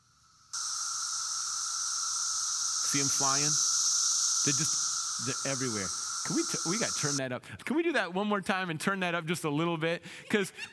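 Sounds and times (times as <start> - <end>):
cicadas buzzing: 0.0 - 7.2
speech: 2.9 - 3.7, 4.4 - 10.7.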